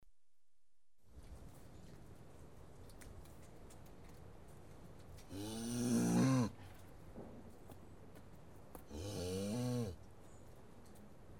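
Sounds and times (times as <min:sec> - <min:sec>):
cattle lowing in deep moos: 0:05.3 - 0:06.5, 0:08.9 - 0:10.0.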